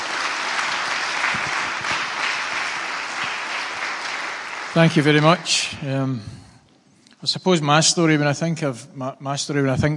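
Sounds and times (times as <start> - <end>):
audience applause: 0.0 - 6.0
speech: 4.8 - 6.5, 7.2 - 9.9.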